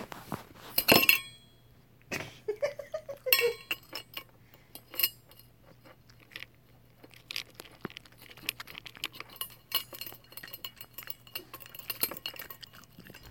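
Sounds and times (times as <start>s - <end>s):
low steady hum: 0.0s - 13.3s
clinks against a bowl: 0.8s - 1.6s, 3.2s - 5.5s, 8.4s - 13.3s
cat eating its food messily: 2.0s - 13.3s.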